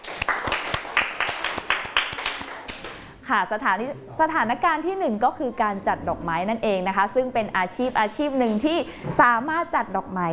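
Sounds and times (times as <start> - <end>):
group of students clapping hands rhythmically: 0.0 - 3.2
speech: 3.3 - 10.3.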